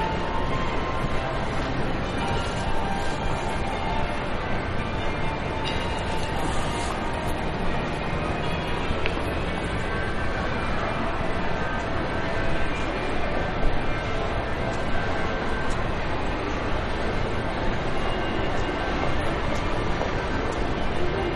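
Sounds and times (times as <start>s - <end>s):
shopping mall ambience while walking about stores: 0.0s - 21.3s.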